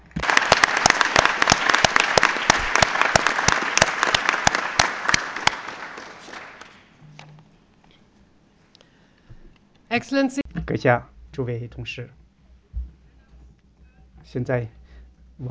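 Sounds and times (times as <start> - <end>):
audience applause: 0.0 - 6.9
speech: 10.0 - 12.2, 14.3 - 14.8.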